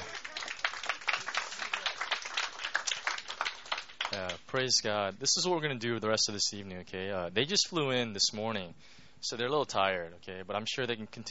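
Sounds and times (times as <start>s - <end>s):
audience clapping: 0.0s - 4.6s
speech: 4.1s - 11.2s.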